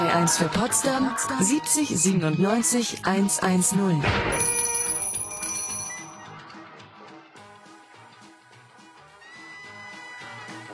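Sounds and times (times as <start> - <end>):
speech: 0.1 - 4.7
telephone ringing with bell-like jangle: 4.2 - 6.4.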